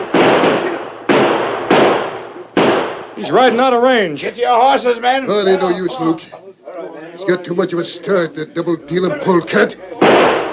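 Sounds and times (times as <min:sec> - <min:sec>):
gunshots fired at a fleeing horseback rider: 0:00.0 - 0:03.6, 0:10.0 - 0:10.5
speech: 0:03.2 - 0:06.5, 0:07.2 - 0:10.4.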